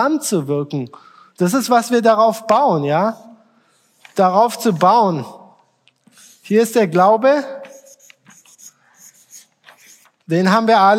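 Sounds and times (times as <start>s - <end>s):
speech: 0.0s - 3.3s, 4.2s - 5.4s, 6.5s - 7.6s, 10.3s - 10.9s
writing on a board: 6.0s - 6.6s, 7.6s - 10.3s.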